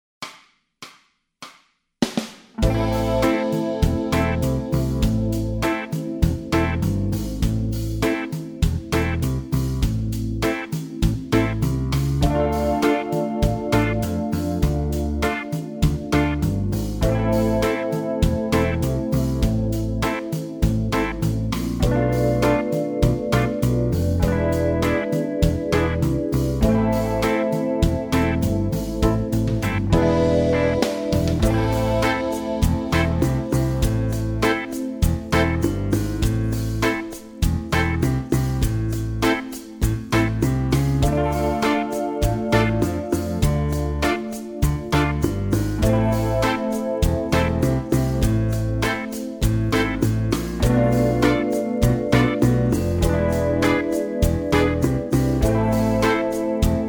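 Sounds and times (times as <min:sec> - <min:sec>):
guitar scales: 0:02.6 - 0:06.9, 0:12.2 - 0:38.1, 0:41.0 - 0:56.8
backing tracks: 0:02.6 - 0:56.8.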